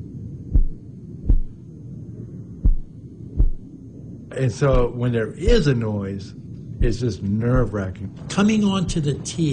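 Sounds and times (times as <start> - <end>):
heartbeat pumping: 0.5 - 1.6, 2.6 - 3.7, 4.6 - 5.8, 6.8 - 7.9
speech: 4.3 - 9.5.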